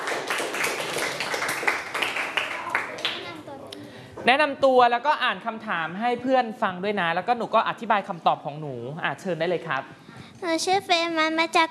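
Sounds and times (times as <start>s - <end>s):
group clapping: 0.0s - 3.4s
speech: 4.2s - 11.6s.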